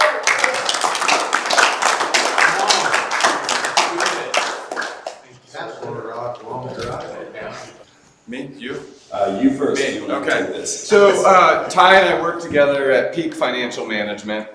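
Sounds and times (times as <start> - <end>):
audience applause: 0.0 - 5.2
speech: 8.6 - 14.5.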